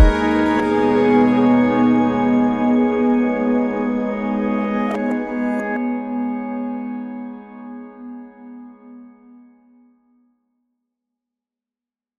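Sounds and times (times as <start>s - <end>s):
autoharp: 0.0s - 9.3s.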